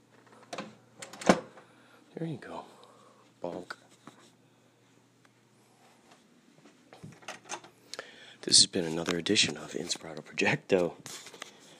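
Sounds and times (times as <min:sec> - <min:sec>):
apartment door being pushed shut: 0:00.5 - 0:01.6
speech: 0:02.2 - 0:02.8, 0:03.4 - 0:03.8, 0:08.4 - 0:11.3.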